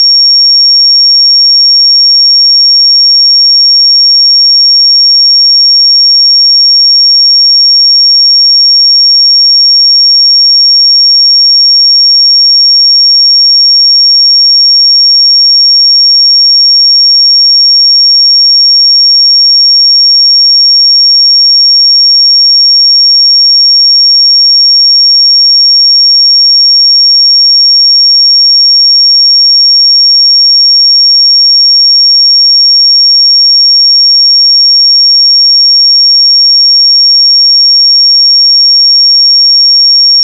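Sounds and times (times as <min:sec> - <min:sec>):
5537 Hz sine pure tone: 0:00.0 - 0:40.2.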